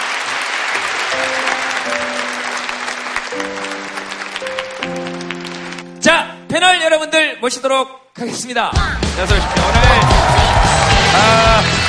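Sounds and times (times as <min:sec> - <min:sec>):
audience clapping: 0:00.0 - 0:06.0, 0:09.2 - 0:11.8
sustained musical tones: 0:01.1 - 0:06.5
speech: 0:06.6 - 0:10.5, 0:11.2 - 0:11.8.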